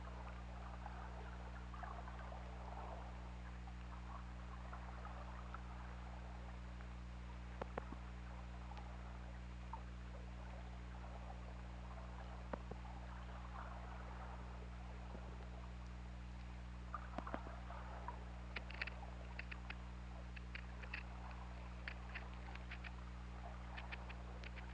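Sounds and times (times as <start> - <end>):
steady low underwater hum and hiss: 0.0 - 24.7
sperm whale clicks: 7.5 - 8.1, 15.4 - 24.7.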